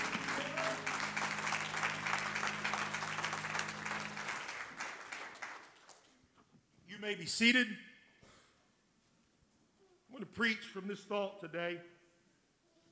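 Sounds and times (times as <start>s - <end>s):
audience clapping hands: 0.0s - 6.3s
speech: 7.0s - 7.9s, 10.4s - 12.0s.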